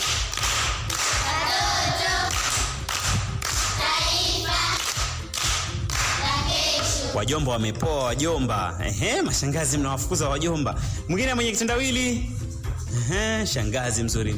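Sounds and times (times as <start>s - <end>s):
audience clapping for a schoolgirl who answered a riddle: 0.0s - 7.0s
speech: 7.2s - 14.3s.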